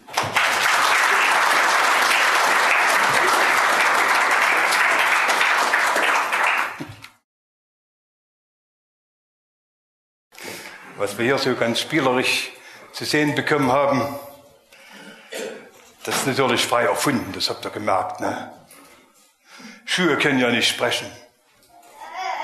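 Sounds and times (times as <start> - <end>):
crowd clapping: 0.0 - 7.2
speech: 11.1 - 14.3, 16.0 - 18.6, 19.9 - 21.2.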